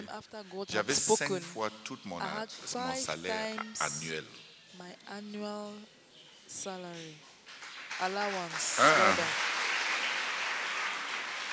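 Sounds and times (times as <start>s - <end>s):
speech: 0.1s - 9.5s
audience applauding: 7.5s - 11.5s.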